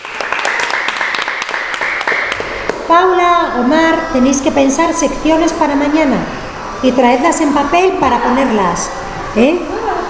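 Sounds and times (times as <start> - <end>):
applause at the close of a show: 0.0 - 2.6
speech: 2.9 - 9.8.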